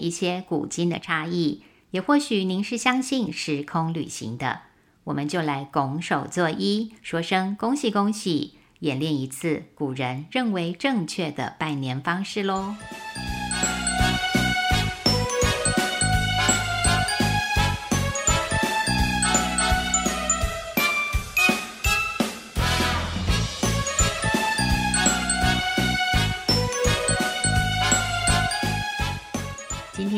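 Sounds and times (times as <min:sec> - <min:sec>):
speech: 0:00.0 - 0:13.3
tinkling bell-like tones: 0:12.6 - 0:22.2, 0:23.6 - 0:30.1
festive Chinese New Year tune: 0:12.6 - 0:30.1
percussive beat: 0:15.0 - 0:22.7, 0:23.3 - 0:28.7.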